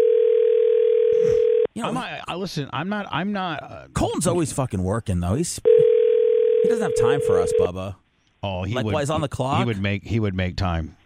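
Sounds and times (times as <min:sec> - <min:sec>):
telephone dial tone while placing a call: 0:00.0 - 0:01.7, 0:05.8 - 0:07.6
speech: 0:01.8 - 0:05.9, 0:06.6 - 0:11.0.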